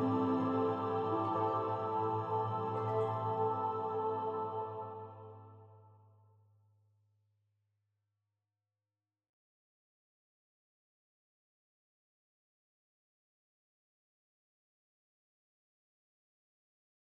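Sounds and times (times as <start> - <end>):
choir singing: 0.0 - 5.8.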